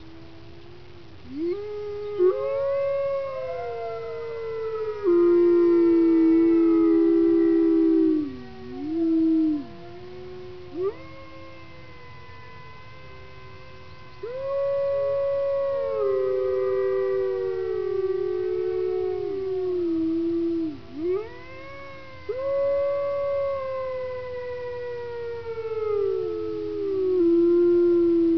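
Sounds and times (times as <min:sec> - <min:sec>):
wolf howling: 0:01.2 - 0:28.3.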